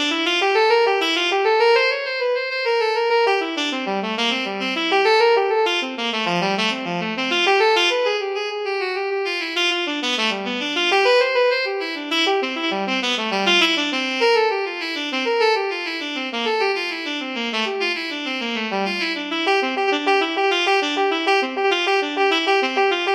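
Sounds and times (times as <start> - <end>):
saxophone playing a cello suite: 0.0 - 23.1.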